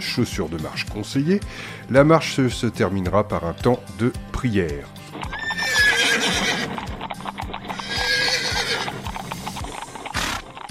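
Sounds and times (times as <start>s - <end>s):
speech: 0.0s - 5.0s
hooves clip-clopping on a hard surface: 5.0s - 10.6s
draft horse neighing: 5.2s - 10.6s.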